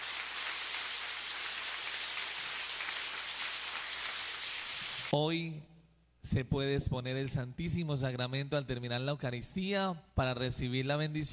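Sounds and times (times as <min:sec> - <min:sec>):
audience applause: 0:00.0 - 0:05.1
speech: 0:05.1 - 0:11.3.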